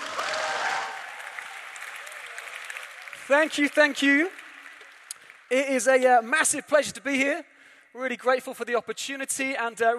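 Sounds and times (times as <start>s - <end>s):
audience applause greeting a guest speaker at a New Day event: 0.0s - 5.9s
speech: 3.3s - 4.4s, 5.5s - 9.9s.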